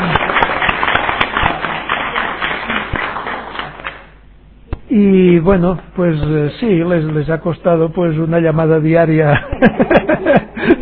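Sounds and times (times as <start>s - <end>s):
audience applause: 0.0s - 4.1s
speech: 4.9s - 10.4s
laughter: 9.3s - 10.7s.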